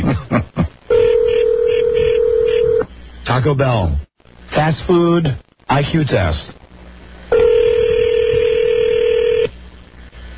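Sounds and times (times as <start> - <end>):
telephone tone: 0.9 - 2.8, 7.3 - 9.5
speech: 3.4 - 6.5.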